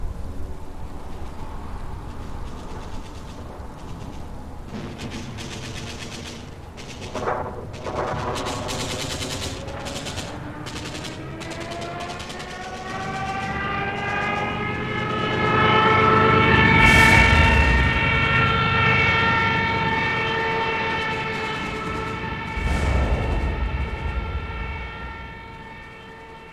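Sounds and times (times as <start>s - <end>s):
aircraft engine droning: 0.0s - 26.5s
machine-gun fire: 3.8s - 14.8s, 20.4s - 26.2s
heavy explosion: 16.8s - 18.7s, 22.4s - 26.3s.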